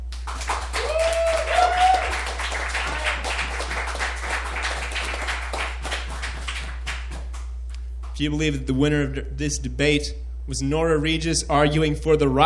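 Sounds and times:
audience applause: 0:00.1 - 0:07.4
speech: 0:08.2 - 0:12.4.

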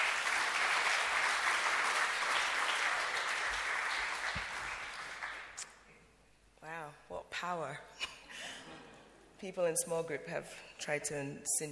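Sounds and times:
crowd applauding: 0:00.0 - 0:05.6
speech: 0:07.4 - 0:08.1, 0:09.4 - 0:11.7.

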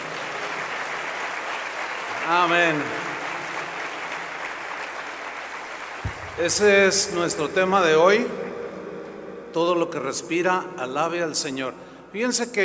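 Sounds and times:
audience applause: 0:00.0 - 0:07.2
speech: 0:02.3 - 0:03.1, 0:06.4 - 0:08.5, 0:09.5 - 0:12.6.

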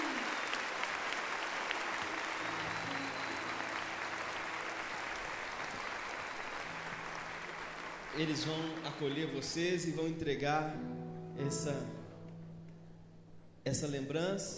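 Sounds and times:
crowd applauding: 0:00.0 - 0:10.0
speech: 0:08.2 - 0:12.0, 0:13.6 - 0:14.5.

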